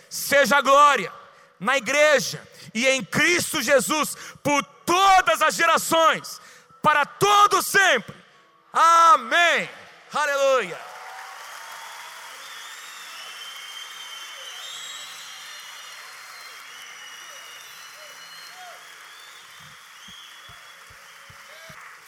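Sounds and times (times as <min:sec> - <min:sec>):
speech: 0:00.1 - 0:10.9
audience applauding: 0:10.6 - 0:22.0.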